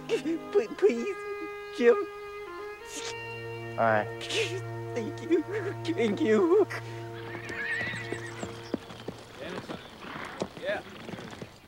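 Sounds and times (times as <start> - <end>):
speech: 0.1 - 2.2, 2.9 - 7.0
horse hooves clip-clopping in a Yankee army camp: 6.0 - 11.6
horse whinnying in a Yankee army camp: 7.2 - 11.6.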